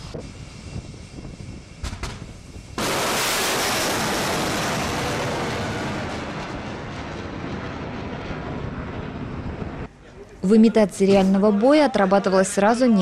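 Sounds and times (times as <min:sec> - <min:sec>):
low rumble of naval cruiser fire during exercises: 0:00.0 - 0:09.9
speech: 0:00.1 - 0:00.4, 0:10.5 - 0:13.0
loud hissing roar of missile launch from a naval cruiser: 0:02.8 - 0:09.9.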